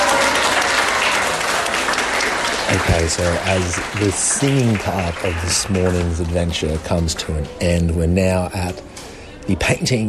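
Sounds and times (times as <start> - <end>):
elderly residents clapping along: 0.0 - 7.8
speech: 2.7 - 8.9, 9.5 - 10.0.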